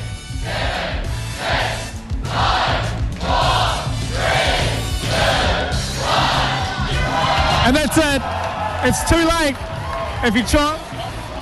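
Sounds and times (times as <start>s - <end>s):
large crowd roaring and chanting countdown: 0.3s - 8.0s
speech: 7.7s - 10.9s.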